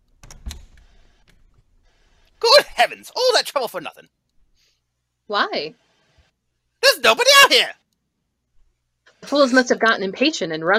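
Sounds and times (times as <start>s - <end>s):
door being unlocked: 0.0s - 1.6s
speech: 2.8s - 4.2s, 5.3s - 5.8s, 7.0s - 7.8s, 9.2s - 10.7s.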